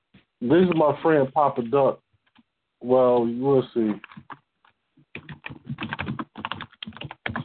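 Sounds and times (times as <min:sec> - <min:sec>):
speech: 0:00.4 - 0:02.0, 0:02.8 - 0:04.1
typing on a computer keyboard: 0:04.0 - 0:07.4.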